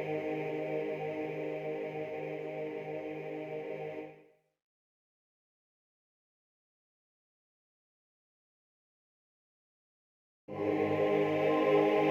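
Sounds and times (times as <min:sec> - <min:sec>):
chorus singing: 0:00.0 - 0:04.2, 0:10.5 - 0:12.0.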